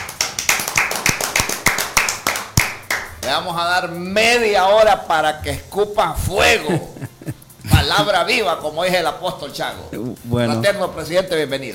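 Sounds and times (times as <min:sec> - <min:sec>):
audience applause: 0:00.0 - 0:03.1
speech: 0:03.3 - 0:07.0, 0:07.8 - 0:11.7
laughter: 0:06.1 - 0:08.1.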